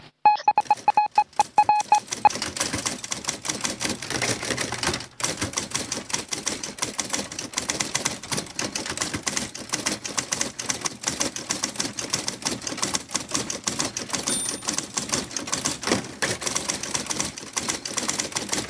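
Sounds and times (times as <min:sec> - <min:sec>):
printer short electronic beeps: 0:00.1 - 0:02.4
printer printing out a tweet: 0:00.6 - 0:18.6.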